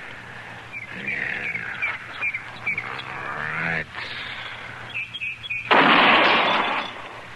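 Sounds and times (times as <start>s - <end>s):
faint bird chirps: 0.6s - 5.7s
rifle shot at a target from a gun steadied on a fence rail: 5.7s - 7.2s.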